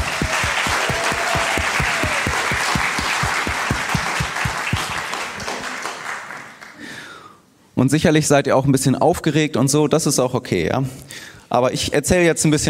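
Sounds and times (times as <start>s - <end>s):
audience applause: 0.0s - 6.8s
speech: 7.8s - 12.6s.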